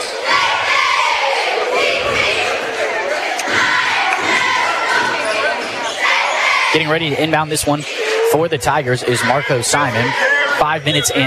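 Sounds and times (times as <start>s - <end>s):
loud gym crowd roaring in protest: 0.0s - 11.2s
speech: 6.8s - 11.2s.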